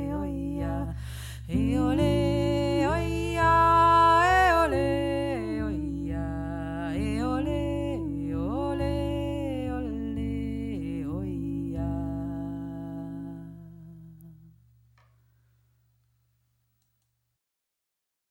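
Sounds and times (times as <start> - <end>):
joik singing: 0.0 - 14.5.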